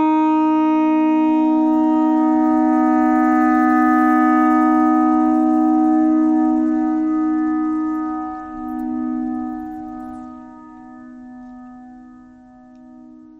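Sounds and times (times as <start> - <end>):
clarinet notes: 0.1 - 13.3
thread noise: 1.6 - 11.6.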